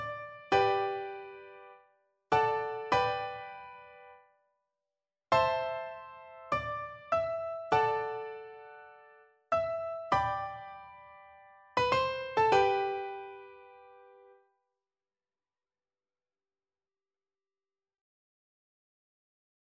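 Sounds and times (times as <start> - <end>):
piano duet: 0.0 - 4.2, 5.4 - 14.4.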